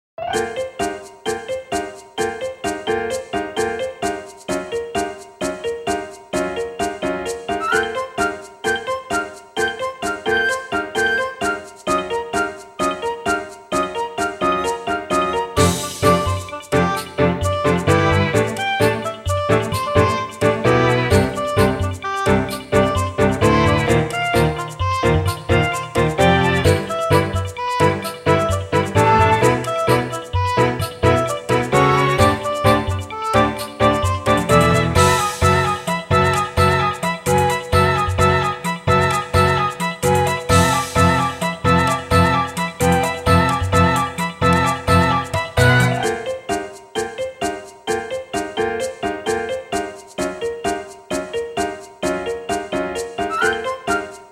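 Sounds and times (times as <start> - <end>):
rhythmic music with change of rhythm: 0.2 - 54.3.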